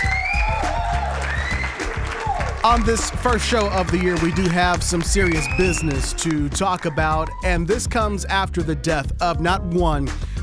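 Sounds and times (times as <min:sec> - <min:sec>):
round of applause: 0:00.0 - 0:07.4
speech: 0:02.6 - 0:10.3.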